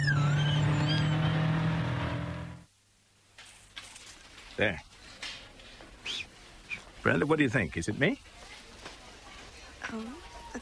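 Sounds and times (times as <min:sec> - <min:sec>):
car engine roaring at high revs on a joyride: 0:00.0 - 0:02.7
speech: 0:04.6 - 0:04.9, 0:07.0 - 0:08.3, 0:09.9 - 0:10.6.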